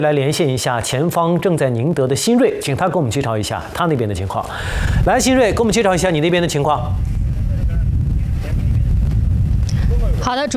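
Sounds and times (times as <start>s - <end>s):
speech: 0.0s - 7.2s, 10.2s - 10.5s
strong seaside wind from Typhoon Bavi at a wharf in Qiuzhu village Ningde: 3.1s - 10.5s.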